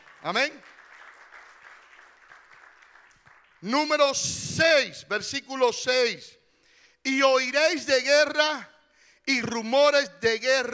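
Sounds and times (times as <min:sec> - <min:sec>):
audience applause: 0:00.0 - 0:03.6
speech: 0:00.2 - 0:00.8, 0:03.6 - 0:06.4, 0:07.0 - 0:10.7.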